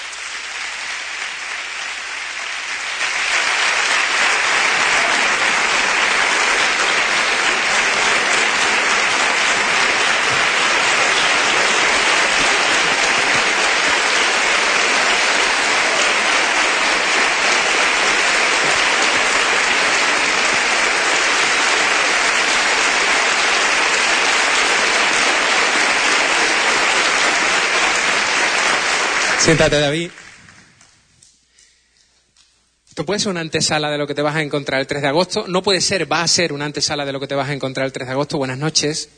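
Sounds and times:
audience applause: 0.0s - 31.0s
speech: 29.5s - 30.2s, 33.0s - 39.1s.

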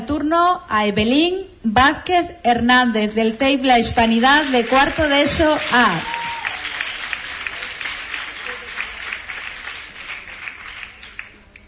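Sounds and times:
speech: 0.3s - 6.2s
applause: 4.1s - 11.6s.

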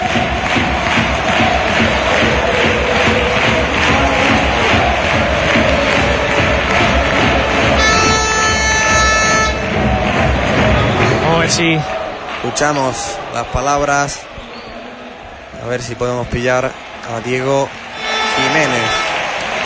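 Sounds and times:
football stadium crowd cheering after a winning goal for Recre: 0.0s - 19.6s
air horn blaring a sustained tone: 7.7s - 9.8s, 18.0s - 19.4s
speech: 11.6s - 14.3s, 15.6s - 19.1s.

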